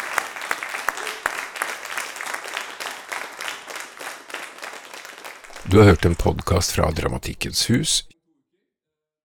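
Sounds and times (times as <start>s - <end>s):
audience applause: 0.0s - 8.1s
speech: 5.6s - 8.1s.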